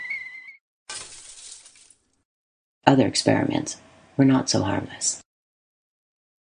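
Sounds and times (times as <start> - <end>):
light bulb glass cracking: 0.9 - 2.0
light bulb glass shattering: 0.9 - 2.0
speech: 2.9 - 5.2.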